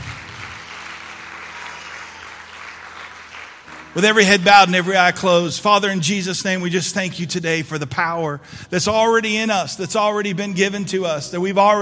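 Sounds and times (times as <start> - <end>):
crowd applauding: 0.0 - 5.2
speech: 3.9 - 11.8.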